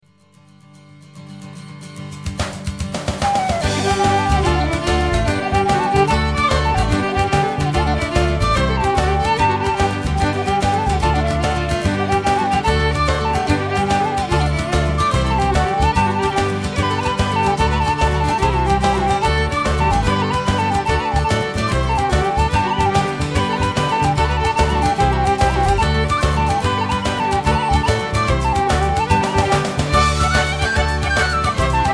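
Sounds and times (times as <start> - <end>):
Irish band playing: 2.6 - 31.9.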